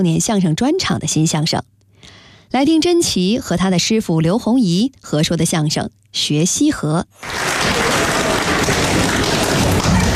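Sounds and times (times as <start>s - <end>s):
speech: 0.0s - 1.8s, 2.5s - 7.8s
audience applause: 7.2s - 10.1s.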